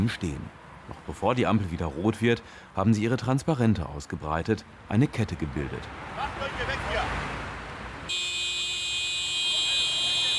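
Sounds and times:
speech: 0:00.0 - 0:06.9
traffic rumble: 0:00.0 - 0:10.3
car horns honking in traffic jam: 0:08.0 - 0:10.3.

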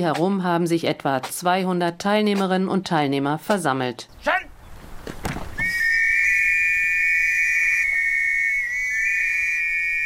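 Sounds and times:
speech: 0:00.0 - 0:04.4
pea whistle being blown: 0:05.6 - 0:10.0.

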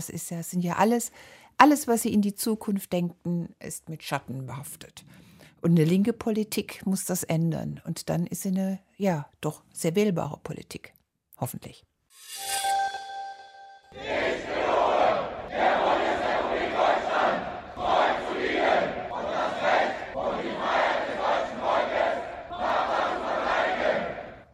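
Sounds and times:
speech: 0:00.0 - 0:12.7
four hundred Bundeswehr soldiers reciting pledge in unison in front of the Reichstag in Berlin: 0:14.0 - 0:24.5.

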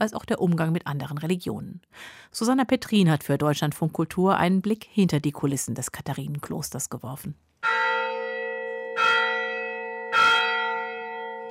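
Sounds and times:
speech: 0:00.0 - 0:07.8
monastery church bell striking twelve noon: 0:07.6 - 0:11.5.

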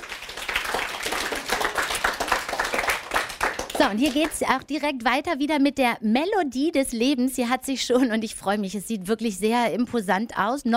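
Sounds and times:
applause from a small group: 0:00.0 - 0:04.4
speech: 0:03.8 - 0:10.7.

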